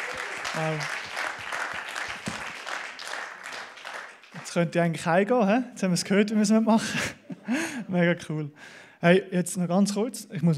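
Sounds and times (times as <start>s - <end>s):
crowd applause: 0.0s - 4.6s
speech: 0.5s - 1.0s, 4.5s - 10.5s.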